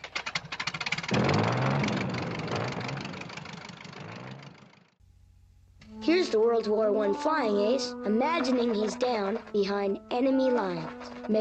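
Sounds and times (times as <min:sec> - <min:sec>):
biplane piston aircraft engine starting and idling: 0:00.0 - 0:05.0
speech: 0:06.2 - 0:11.3.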